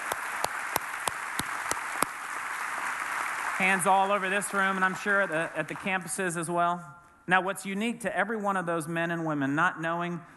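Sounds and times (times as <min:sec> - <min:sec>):
sharp evenly spaced claps: 0:00.0 - 0:04.1
audience applause: 0:00.0 - 0:06.1
speech: 0:03.6 - 0:10.3.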